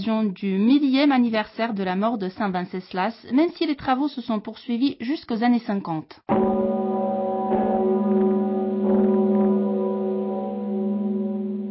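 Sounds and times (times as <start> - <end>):
speech: 0.0 - 6.6
bourdon Zikmund Sigismund great cathedral bell tolling, 14 tonnes: 6.3 - 11.6.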